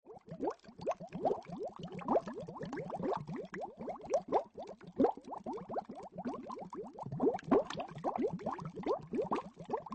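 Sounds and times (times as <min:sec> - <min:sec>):
bubbles: 0:00.1 - 0:09.9.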